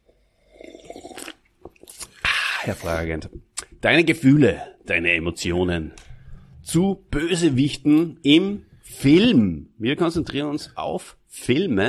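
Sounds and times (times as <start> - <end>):
sipping and swallowing Spezi cola-orange soda: 0.0 - 3.8
speech: 2.6 - 6.0, 6.7 - 11.8.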